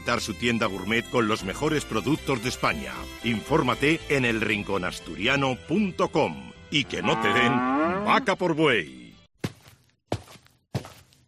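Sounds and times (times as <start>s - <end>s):
speech: 0.1s - 9.0s
footsteps of a person walking with firm heel strikes: 9.4s - 11.2s.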